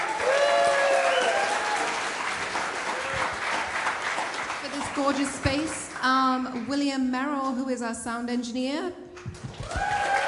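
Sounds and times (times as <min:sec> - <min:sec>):
audience applause: 0:00.0 - 0:05.9, 0:09.4 - 0:10.2
speech: 0:05.1 - 0:09.0.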